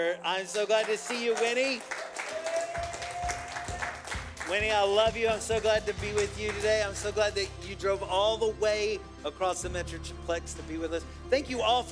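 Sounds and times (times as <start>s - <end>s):
speech: 0.0s - 2.9s, 4.5s - 11.9s
audience applause: 0.4s - 7.2s.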